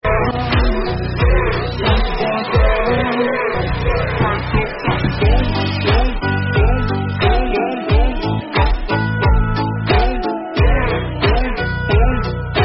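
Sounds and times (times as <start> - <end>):
victory dance meme music: 0.0 - 12.6.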